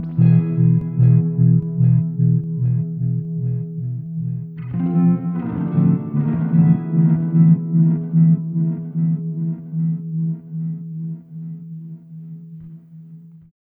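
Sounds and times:
rhythm guitars in E: 0:00.0 - 0:12.9.

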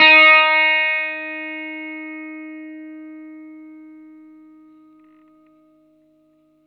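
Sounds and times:
vintage blues guitar note: 0:00.0 - 0:06.3.

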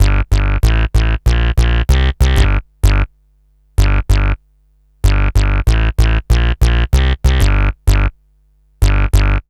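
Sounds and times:
roots funk bass: 0:00.0 - 0:03.1, 0:03.8 - 0:04.4, 0:05.0 - 0:08.2, 0:08.8 - 0:09.4.

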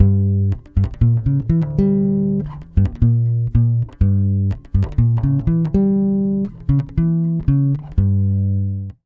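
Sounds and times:
Brazilian bossa bass in G diminished: 0:00.0 - 0:09.0.

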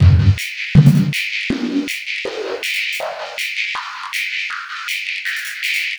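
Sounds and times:
master beats loop: 0:00.0 - 0:01.8.

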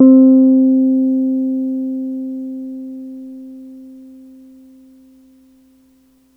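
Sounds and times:
soft Wurlitzer electric piano C3 note: 0:00.0 - 0:04.5.

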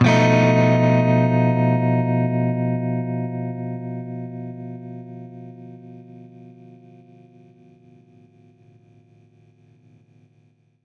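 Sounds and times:
baritone guitar B7b5 chord: 0:00.0 - 0:05.4.

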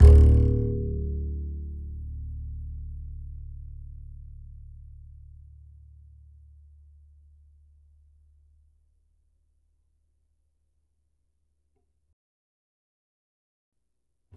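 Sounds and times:
upright acoustic bass in E: 0:00.0 - 0:06.6.

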